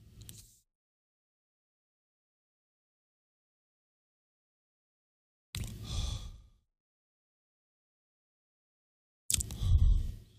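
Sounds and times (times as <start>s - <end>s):
deep inhale of a smoke drag: 5.7s - 6.6s, 9.6s - 10.3s
breathy exhale: 5.8s - 6.6s.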